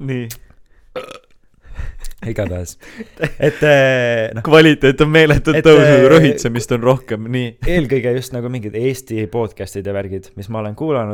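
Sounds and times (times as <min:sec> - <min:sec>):
speech: 0:00.0 - 0:00.4, 0:02.2 - 0:11.1
burp: 0:01.0 - 0:01.4
laughter: 0:02.2 - 0:04.0, 0:05.4 - 0:06.7.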